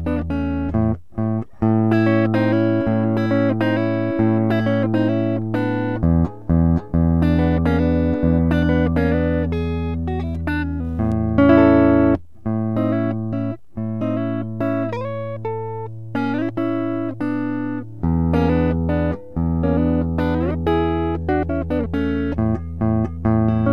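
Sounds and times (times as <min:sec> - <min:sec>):
guitar playing: 0:00.0 - 0:23.7.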